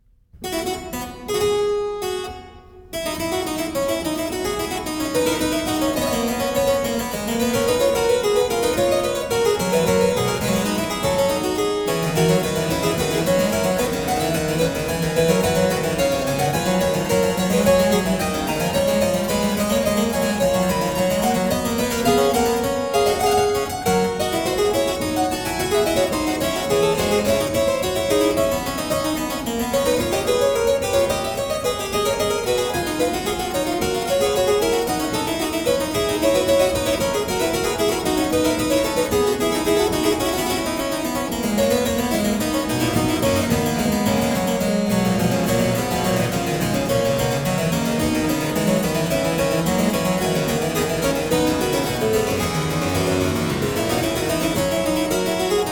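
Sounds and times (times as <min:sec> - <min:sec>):
keyboard fugue: 0:00.4 - 0:55.7.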